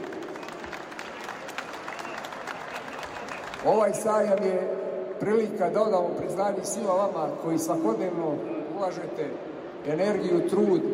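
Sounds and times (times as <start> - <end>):
crowd applauding at an agricultural fair: 0.0 - 4.5
speech: 3.6 - 10.9.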